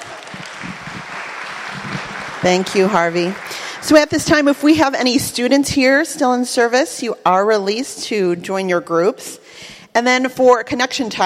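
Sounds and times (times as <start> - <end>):
audience applause: 0.0 - 4.5
speech: 2.4 - 11.2.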